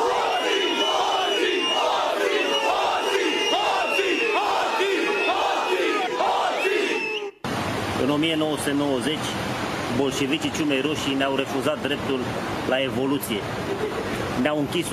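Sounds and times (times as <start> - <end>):
large crowd shouting a rhythmic chant: 0.0 - 7.4
speech: 8.3 - 14.9.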